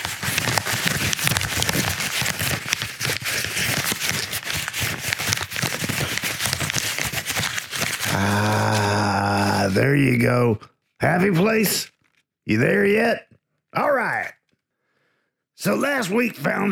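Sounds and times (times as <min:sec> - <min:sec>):
paper crinkling: 0:00.0 - 0:10.1
speech: 0:09.8 - 0:11.9, 0:12.5 - 0:14.4, 0:15.6 - 0:16.6.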